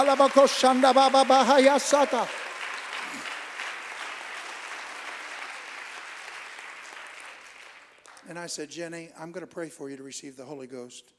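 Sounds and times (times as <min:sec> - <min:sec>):
speech: 0:00.0 - 0:02.4, 0:08.3 - 0:11.1
audience clapping hands: 0:00.0 - 0:08.6.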